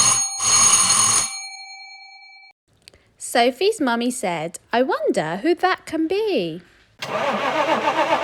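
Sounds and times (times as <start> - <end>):
doorbell ringing: 0.0 - 2.5
speech: 3.3 - 8.1.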